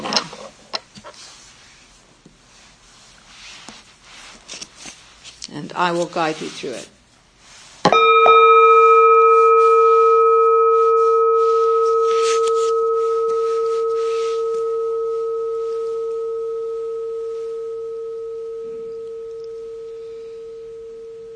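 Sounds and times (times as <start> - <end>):
speech: 5.6 - 7.0
gong struck and ringing: 7.9 - 21.3.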